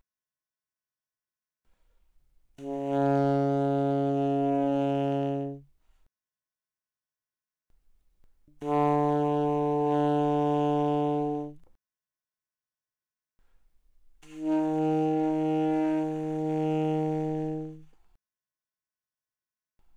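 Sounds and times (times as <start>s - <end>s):
alto saxophone notes played softly without vibrato: 2.6s - 5.7s, 8.6s - 11.6s, 14.2s - 17.9s.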